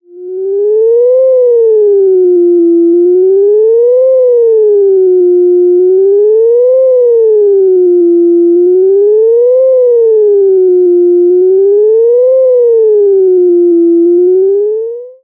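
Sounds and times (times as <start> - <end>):
Klavis module FM modulation step artefacts: 0.0 - 15.2.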